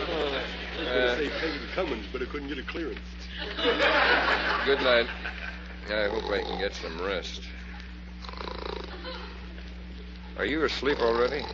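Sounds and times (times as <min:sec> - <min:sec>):
laughter: 0:00.0 - 0:05.9, 0:08.8 - 0:09.7
low electrical hum: 0:00.0 - 0:11.5
speech: 0:01.2 - 0:07.6, 0:10.4 - 0:11.5
raspy snore: 0:08.2 - 0:08.9.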